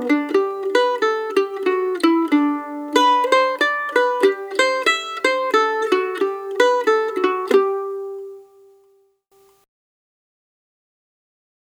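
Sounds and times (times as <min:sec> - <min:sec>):
hornpipe tune practice version: 0:00.0 - 0:08.8.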